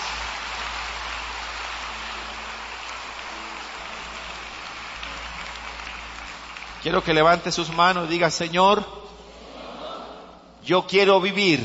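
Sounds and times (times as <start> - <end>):
audience applause: 0.0 - 8.5
speech: 6.8 - 9.1, 10.7 - 11.6.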